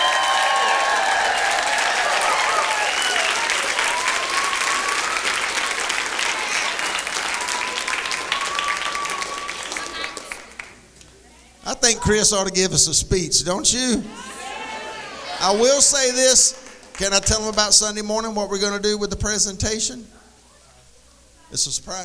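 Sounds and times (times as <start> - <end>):
audience shouts and whistles: 0.0 - 5.6, 6.4 - 10.3
standing audience clapping at a children's Christmas musical: 0.0 - 10.9, 15.4 - 17.9
speech: 12.0 - 14.3, 15.4 - 20.2, 21.5 - 22.0.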